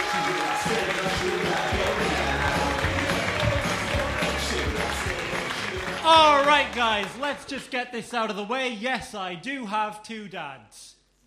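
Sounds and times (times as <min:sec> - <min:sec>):
audience applause and cheering: 0:00.0 - 0:07.5
speech: 0:06.1 - 0:10.9.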